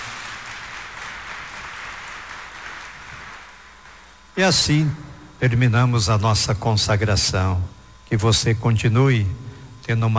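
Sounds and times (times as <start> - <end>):
applause: 0.0 - 4.2
speech: 4.4 - 10.1.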